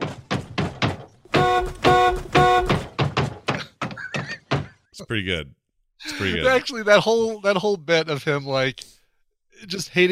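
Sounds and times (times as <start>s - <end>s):
car being beaten: 0.0s - 4.7s
speech: 5.0s - 9.0s, 9.6s - 10.1s.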